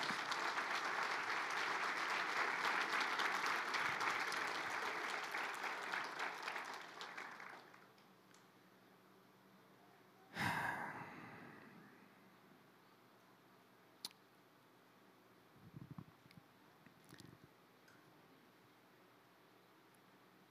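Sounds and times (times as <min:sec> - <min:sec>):
audience applauding: 0:00.0 - 0:07.9.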